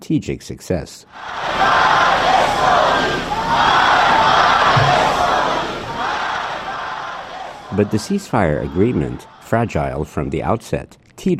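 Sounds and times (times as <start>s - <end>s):
speech: 0.1s - 4.2s, 7.7s - 11.3s
large crowd chanting slogans in unison at a rally: 1.1s - 9.6s.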